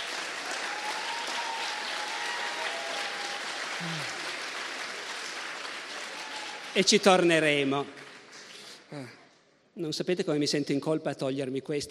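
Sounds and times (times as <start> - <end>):
audience applause: 0.0 - 8.8
speech: 3.8 - 4.2, 6.8 - 8.0, 8.9 - 9.2, 9.8 - 11.8.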